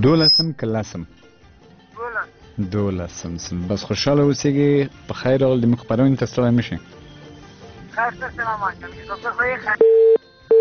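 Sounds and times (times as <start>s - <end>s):
caller's voice on a phone call: 0.0s - 0.5s, 2.0s - 2.3s, 8.0s - 10.1s
speech: 0.0s - 1.3s, 2.6s - 7.0s, 8.0s - 10.2s
telephone busy tone beeps: 0.1s - 0.6s, 9.8s - 10.5s.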